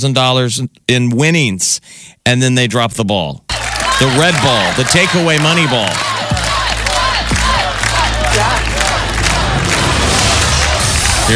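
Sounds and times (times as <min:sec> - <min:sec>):
speech: 0:00.0 - 0:06.5
studio audience cheering: 0:03.5 - 0:11.3.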